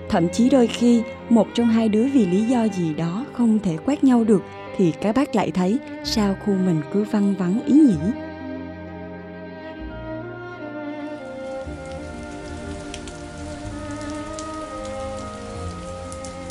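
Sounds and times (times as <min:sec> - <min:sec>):
steady rain falling into the evening: 0:00.0 - 0:08.2, 0:11.0 - 0:16.5
speech: 0:00.1 - 0:08.2.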